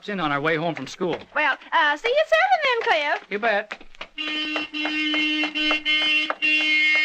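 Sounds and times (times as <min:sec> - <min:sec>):
speech: 0:00.0 - 0:07.0
car horn honking: 0:04.2 - 0:07.0.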